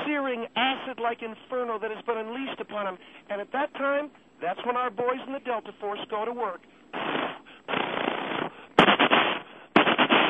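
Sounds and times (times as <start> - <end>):
speech: 0.2 - 7.4
M16 and M1 rifle gunfire: 8.8 - 10.2.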